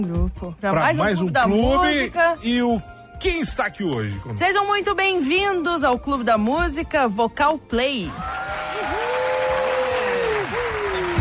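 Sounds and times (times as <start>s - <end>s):
speech: 0.0s - 8.4s
audience clapping: 8.1s - 11.1s.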